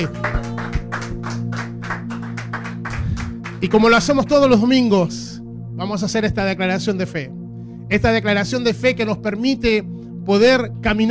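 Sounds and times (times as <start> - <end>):
speech: 0.0 - 0.4, 3.6 - 11.0
audience applauding: 0.0 - 4.1.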